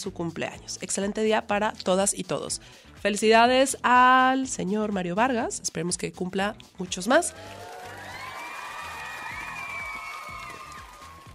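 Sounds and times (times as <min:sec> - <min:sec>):
speech: 0:00.0 - 0:07.7
applause sound effect: 0:07.3 - 0:11.3.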